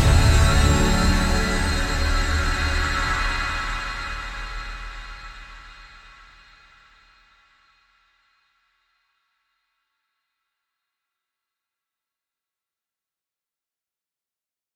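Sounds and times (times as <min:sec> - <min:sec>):
extended trailer theme music: 0:00.0 - 0:05.6.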